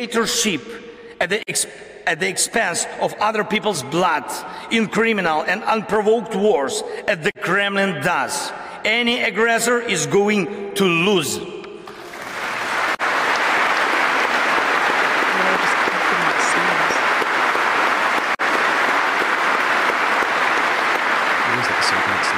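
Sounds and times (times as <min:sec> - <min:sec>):
speech: 0:00.0 - 0:11.5
audience applause: 0:11.9 - 0:22.3.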